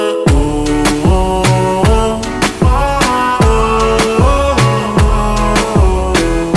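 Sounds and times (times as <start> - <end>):
slowed reverb music: 0.2 - 6.5.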